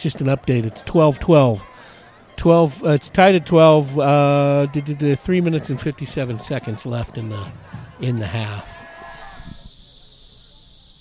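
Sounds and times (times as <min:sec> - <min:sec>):
speech: 0:00.0 - 0:08.8
cicadas buzzing in trees: 0:06.2 - 0:11.0.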